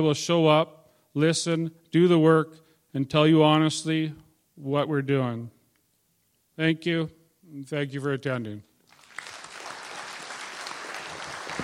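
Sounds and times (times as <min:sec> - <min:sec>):
speech: 0:00.0 - 0:05.6, 0:06.6 - 0:08.7
audience applause for candidates running for mayor of Penticton: 0:08.9 - 0:11.6.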